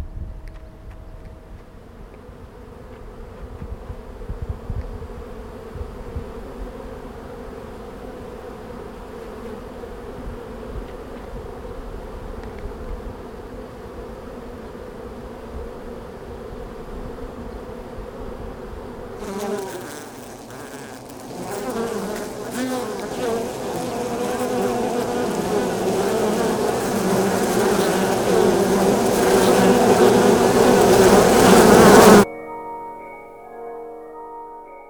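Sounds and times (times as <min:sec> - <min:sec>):
honeybees buzzing around beehives: 0:02.3 - 0:32.3.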